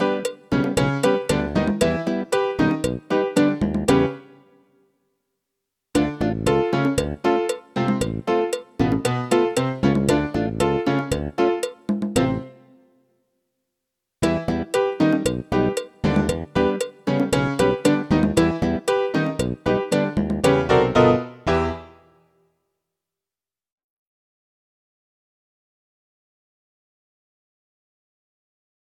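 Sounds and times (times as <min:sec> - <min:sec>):
latin rock music: 0:00.0 - 0:04.2, 0:06.0 - 0:12.5, 0:14.2 - 0:21.9.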